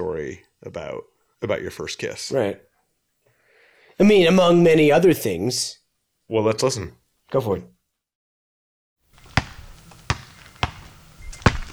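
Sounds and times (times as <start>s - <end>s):
speech: 0.3s - 2.7s, 4.0s - 7.8s
basketball bouncing before a shot: 9.2s - 11.7s.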